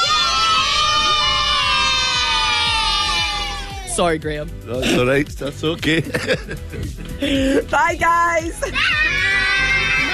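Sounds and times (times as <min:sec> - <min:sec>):
crowd of children shouting loudly on a bus: 0:00.0 - 0:03.9, 0:08.6 - 0:10.1
speech: 0:04.0 - 0:09.5
laughter: 0:05.8 - 0:07.7.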